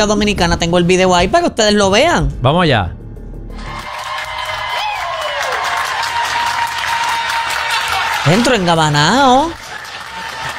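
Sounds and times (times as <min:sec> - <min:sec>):
speech: 0:00.0 - 0:03.7, 0:08.2 - 0:09.6
audience applauding: 0:03.6 - 0:10.5.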